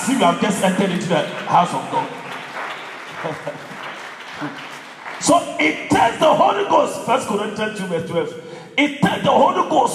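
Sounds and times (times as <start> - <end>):
speech: 0.0 - 2.2, 3.2 - 3.7, 4.4 - 9.9
audience clapping: 0.1 - 6.4.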